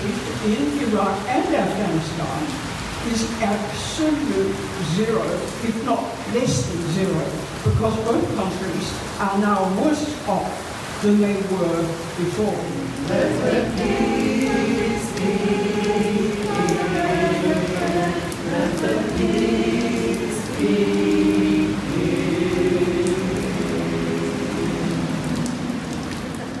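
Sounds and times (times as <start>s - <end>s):
heavy rain in Sydney: 0.0s - 26.5s
speech: 0.1s - 14.4s
sustained tonal sounds: 12.7s - 25.5s.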